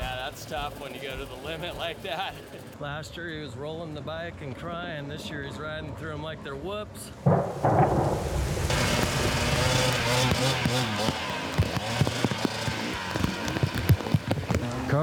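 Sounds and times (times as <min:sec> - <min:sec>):
speech: 0:00.5 - 0:08.5, 0:10.1 - 0:11.3
sharp knocks: 0:07.2 - 0:14.4
heavy rain pouring down: 0:07.2 - 0:14.6.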